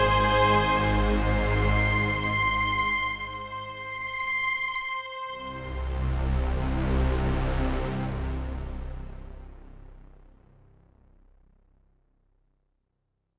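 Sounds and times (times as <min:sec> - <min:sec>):
slow analog strings on a sampler: 0:00.0 - 0:10.1.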